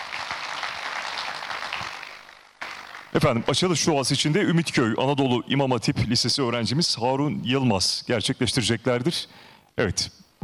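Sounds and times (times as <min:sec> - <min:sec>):
applause for officials at a formal ceremony: 0:00.0 - 0:03.2
speech: 0:03.1 - 0:10.4.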